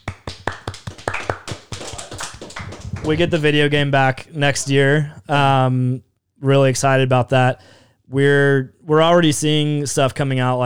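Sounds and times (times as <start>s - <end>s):
people clapping: 0.0s - 3.7s
speech: 3.0s - 10.6s.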